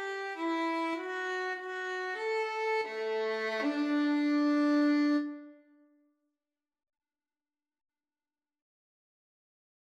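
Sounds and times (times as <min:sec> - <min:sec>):
national anthem on violin: 0:00.0 - 0:05.6.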